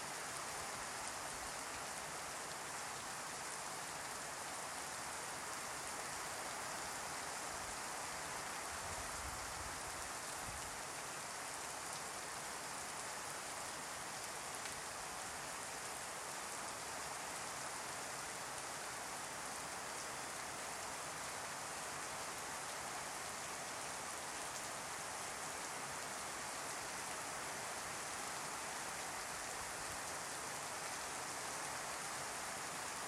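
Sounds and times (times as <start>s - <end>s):
steady rain in the Amazon: 0.0s - 33.0s.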